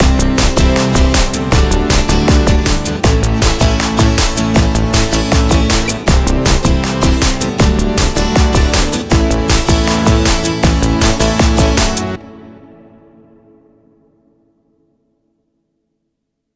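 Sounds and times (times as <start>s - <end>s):
groove music: 0.0s - 13.0s.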